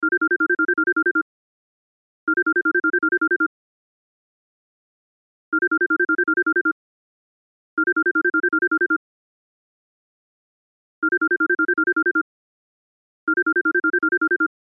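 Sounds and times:
cell phone ringtone: 0:00.1 - 0:01.2, 0:02.3 - 0:03.5, 0:05.6 - 0:06.7, 0:07.8 - 0:09.0, 0:11.0 - 0:12.2, 0:13.3 - 0:14.5.

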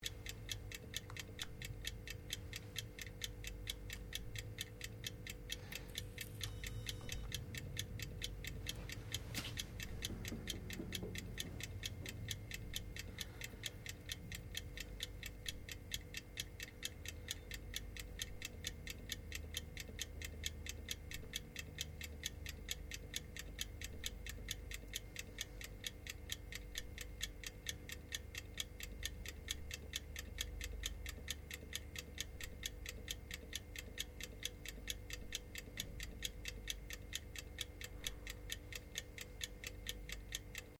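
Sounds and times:
fan-forced oven fan running with timer operating: 0:00.0 - 0:40.7.

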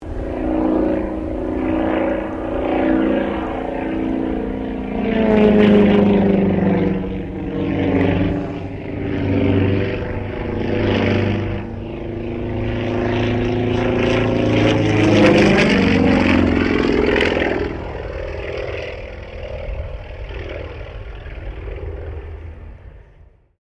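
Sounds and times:
Sukhoi Su-26M aerobatic plane passing: 0:00.0 - 0:23.5.

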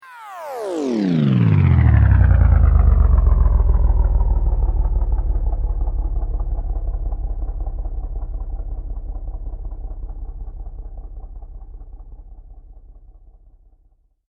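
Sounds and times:
slow mechanical sweep: 0:00.5 - 0:12.0.

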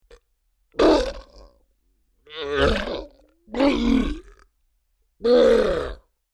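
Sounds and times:
large creature grunting in pain: 0:00.8 - 0:01.4, 0:02.3 - 0:04.4, 0:05.2 - 0:06.1.

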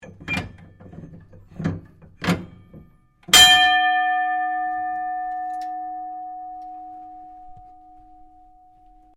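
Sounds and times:
engineering signal ring onboard HMAS Castlemaine: 0:03.3 - 0:09.1.

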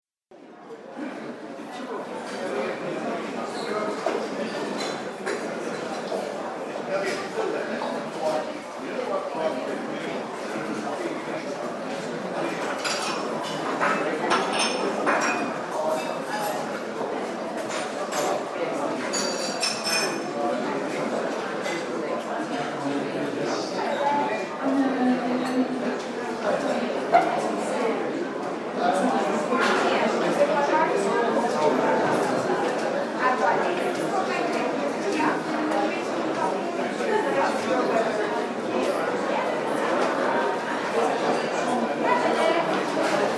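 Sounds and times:
busy open plan hotel reception and cafe: 0:00.3 - 0:43.3.

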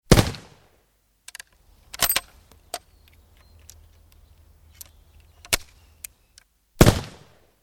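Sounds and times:
musket shots: 0:00.1 - 0:00.6, 0:06.8 - 0:07.4.

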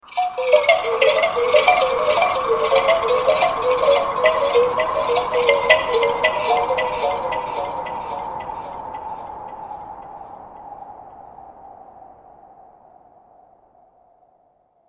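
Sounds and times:
creepy carnival music box: 0:00.0 - 0:10.3.

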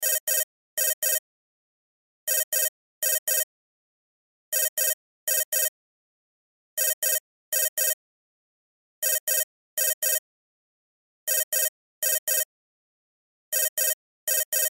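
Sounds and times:
cell phone ringtone: 0:00.0 - 0:01.2, 0:02.3 - 0:03.5, 0:04.5 - 0:05.7, 0:06.8 - 0:08.0, 0:09.0 - 0:10.2, 0:11.3 - 0:12.5, 0:13.5 - 0:14.7.

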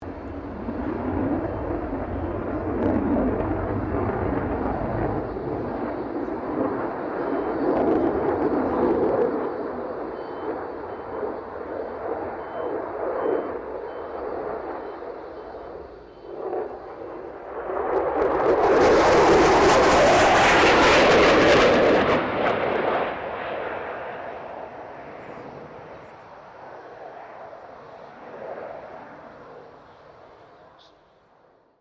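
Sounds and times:
FA-18 Hornet aircraft passing: 0:00.0 - 0:31.7.

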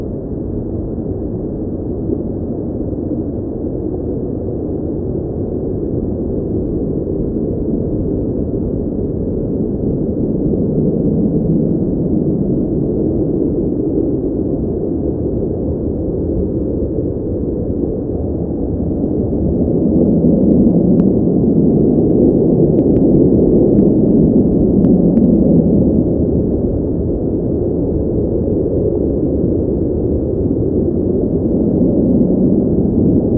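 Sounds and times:
ghostly wind gusts: 0:00.0 - 0:33.3.

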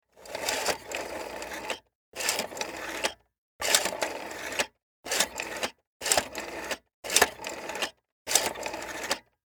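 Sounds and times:
antique rotary dial telephone dialing: 0:00.3 - 0:09.3.

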